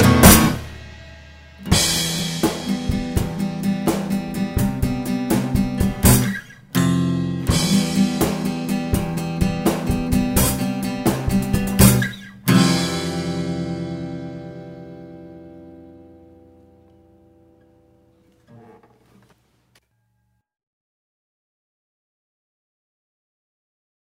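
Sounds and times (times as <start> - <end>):
drums: 0.0 - 15.4.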